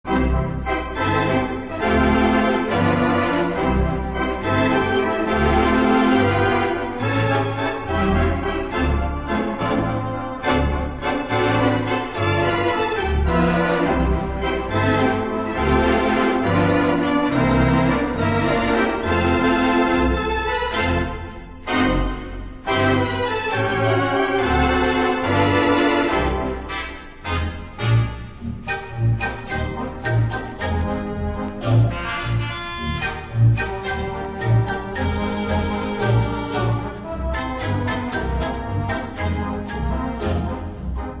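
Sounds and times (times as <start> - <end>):
organ: 0.0 - 41.1.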